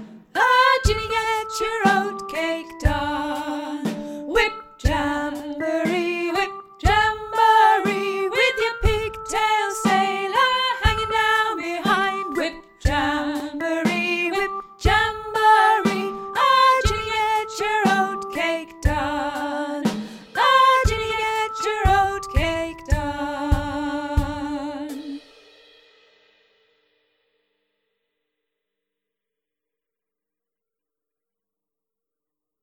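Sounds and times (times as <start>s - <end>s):
soprano sea shanty singing: 0.4s - 25.2s.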